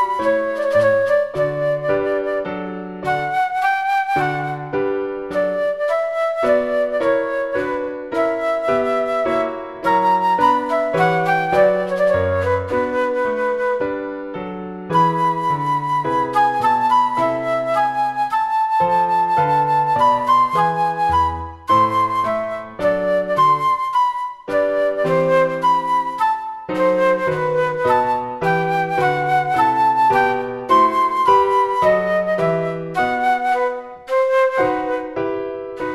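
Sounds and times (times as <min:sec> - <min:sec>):
slow flute and piano sonata in E minor: 0:00.0 - 0:35.9.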